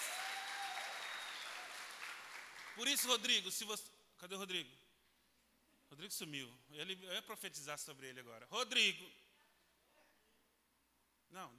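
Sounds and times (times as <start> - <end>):
audience applauding: 0.0 - 3.1
speech: 2.8 - 4.9, 5.9 - 9.2, 11.3 - 11.5.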